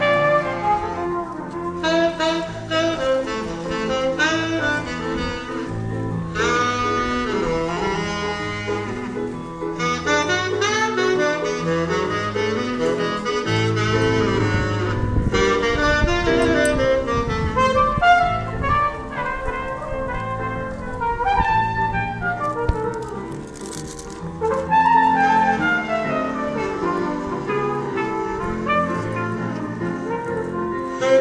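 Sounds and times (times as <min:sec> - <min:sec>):
jazz music: 0:00.0 - 0:31.1.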